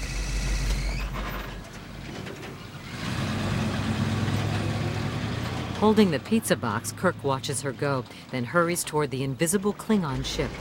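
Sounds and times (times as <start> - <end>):
truck reversing: 0.0 - 8.4
truck driving away: 0.0 - 10.5
speech: 5.8 - 10.5.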